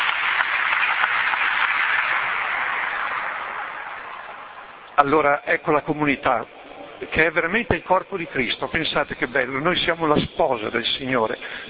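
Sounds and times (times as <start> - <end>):
audience applause: 0.0 - 5.2
speech: 5.0 - 11.6.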